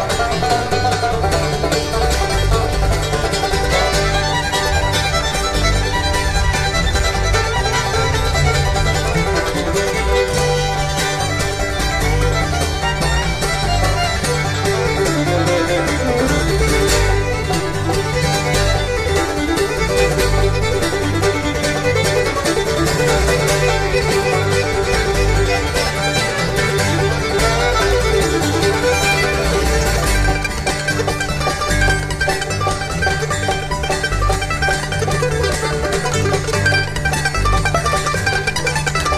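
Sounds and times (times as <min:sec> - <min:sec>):
fiddle instrumental: 0:00.0 - 0:39.1.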